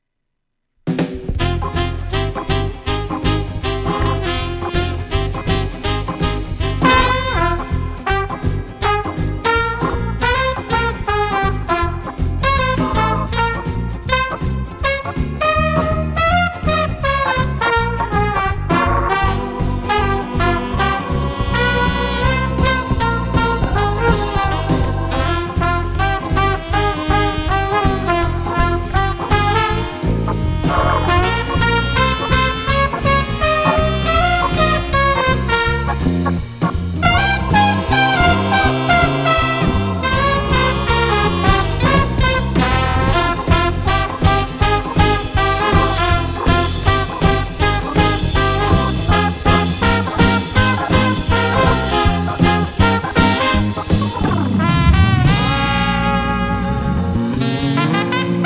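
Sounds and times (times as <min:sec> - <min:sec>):
big band jazz jam: 0:00.9 - 0:58.4.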